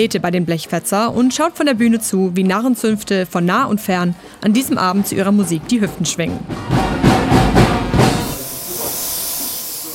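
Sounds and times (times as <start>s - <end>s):
speech: 0.0s - 7.1s
spray can spraying face paint: 8.2s - 9.9s.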